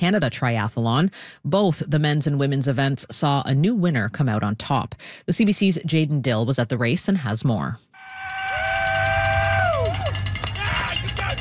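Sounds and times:
speech: 0.0s - 8.3s
supporters cheering athletes at an Ironman triathlon: 8.0s - 11.3s.

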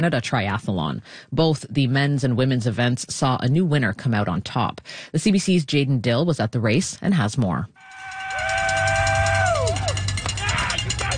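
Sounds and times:
speech: 0.0s - 7.8s
noisemakers clattering: 7.8s - 11.1s
people shouting: 7.8s - 11.1s
spectators cheering at a triathlon: 7.8s - 11.1s.

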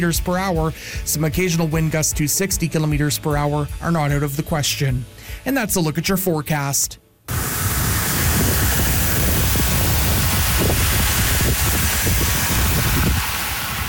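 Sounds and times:
speech: 0.0s - 7.0s
recorded rain: 7.3s - 13.8s.

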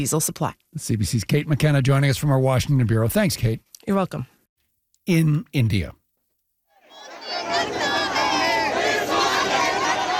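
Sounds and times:
speech: 0.0s - 4.3s, 5.0s - 6.0s
opposition supporters and activists chanting at a protest in India: 6.8s - 10.1s.

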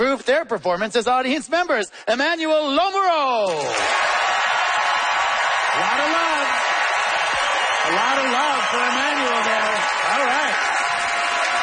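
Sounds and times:
speech: 0.1s - 4.1s, 5.8s - 6.6s, 7.8s - 10.8s
audience applause: 3.5s - 11.6s.

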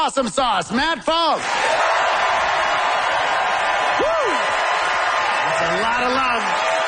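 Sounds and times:
speech: 0.0s - 1.8s, 5.4s - 6.8s
crowd applause: 1.4s - 6.8s.

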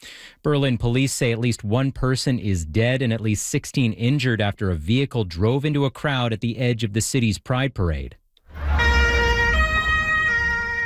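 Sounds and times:
speech: 0.4s - 8.2s
emergency vehicle sirens wailing: 8.6s - 10.8s.

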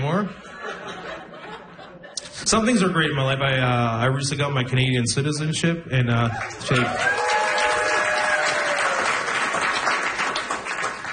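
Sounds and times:
speech: 0.1s - 0.7s, 2.4s - 7.2s
laughter: 0.4s - 2.4s
crowd applause: 6.3s - 11.1s.

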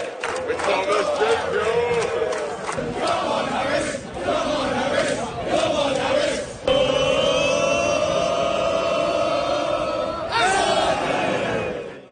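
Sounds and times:
England football fans chanting at a baseball game: 0.0s - 12.1s.

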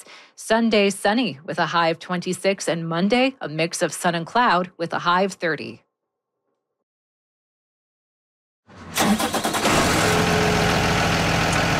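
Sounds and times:
speech: 0.4s - 5.8s
big yellow school bus engine starting and idling: 8.7s - 11.7s.

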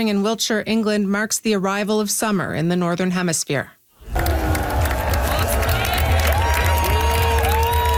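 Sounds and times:
speech: 0.0s - 4.2s
large outdoor crowd cheering and shouting at sunrise: 4.0s - 7.9s.

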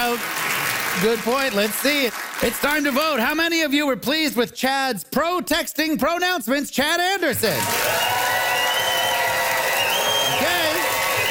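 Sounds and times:
studio audience cheering and applauding: 0.0s - 3.2s, 7.4s - 11.2s
speech: 0.1s - 0.4s, 1.0s - 8.2s
audience whoops and shouted voices: 7.6s - 11.2s.

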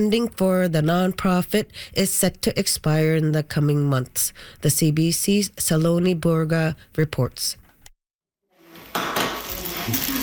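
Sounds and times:
speech: 0.0s - 7.6s, 9.8s - 10.2s
pans and cutlery clattering while cooking a burger: 8.9s - 10.2s.

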